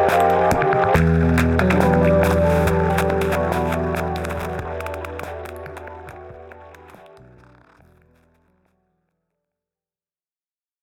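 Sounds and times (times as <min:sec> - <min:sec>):
intradiegetic looping music: 0:00.0 - 0:07.8.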